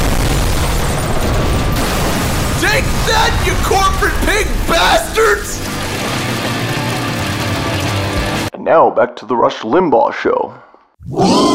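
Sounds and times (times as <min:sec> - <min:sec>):
helicopter crashing in a loud explosion: 0:00.0 - 0:08.4
speech: 0:02.8 - 0:05.7, 0:08.7 - 0:11.5.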